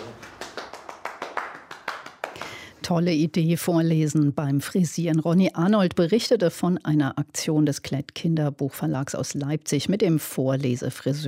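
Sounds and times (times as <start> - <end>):
applause for readers after a read-aloud session: 0.0 - 2.8
speech: 2.9 - 11.2.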